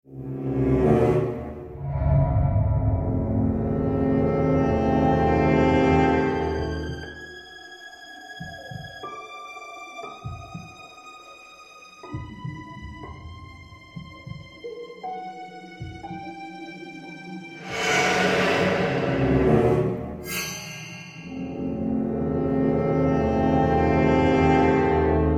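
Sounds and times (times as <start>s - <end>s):
haunted house suspense music: 0.1s - 25.3s.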